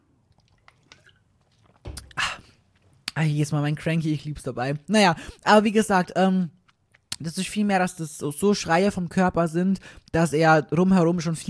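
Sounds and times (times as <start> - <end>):
person slurping a sip of a drink: 0.3 - 2.9
speech: 3.2 - 6.6, 7.2 - 11.4.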